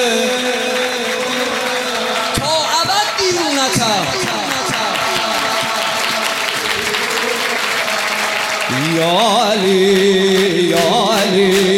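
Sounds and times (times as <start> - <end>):
audience clapping in time with a Shia devotional song: 0.0 - 11.7
people singing a chanted Shia devotional song praising Ali: 0.0 - 11.7
laughter: 2.3 - 11.4
speech: 8.9 - 11.7.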